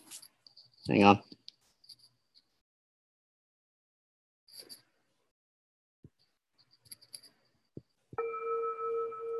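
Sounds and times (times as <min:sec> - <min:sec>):
speech: 0:00.9 - 0:01.4
bell ringing: 0:08.2 - 0:09.3.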